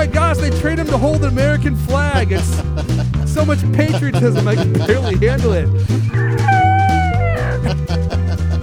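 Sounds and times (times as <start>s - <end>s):
speech: 0.6s - 6.6s
laughter: 2.3s - 5.6s, 6.5s - 8.6s
bald eagle cry sound effect: 6.2s - 7.6s.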